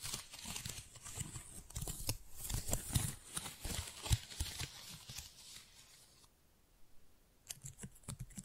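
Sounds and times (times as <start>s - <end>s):
flower crinkly rustling and crackles: 0.0s - 6.3s.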